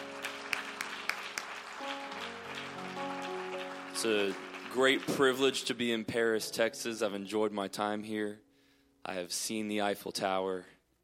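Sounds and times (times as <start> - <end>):
audience clapping hands: 0.0 - 6.0
speech: 4.0 - 10.8.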